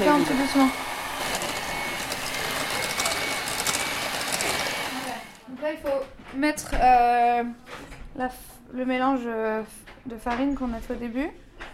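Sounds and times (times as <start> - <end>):
speech: 0.0 - 0.9, 6.4 - 11.4
electric mixer beating egg into carrot cake batter: 0.0 - 5.4.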